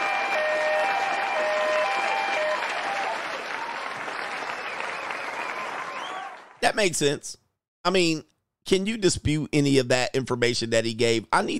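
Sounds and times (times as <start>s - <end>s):
audience applause: 0.0s - 6.6s
speech: 6.6s - 11.5s.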